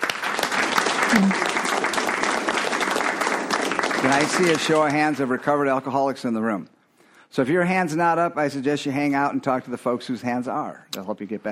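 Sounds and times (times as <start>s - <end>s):
crowd applauding: 0.0s - 5.8s
speech: 1.1s - 1.5s, 4.0s - 6.7s, 7.3s - 11.5s.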